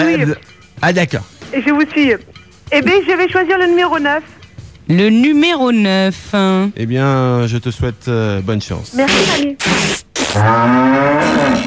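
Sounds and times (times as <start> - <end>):
speech: 0.0 - 11.6
bursts of hissing noise: 9.0 - 10.4
cow mooing in a long low-pitched call: 10.3 - 11.6.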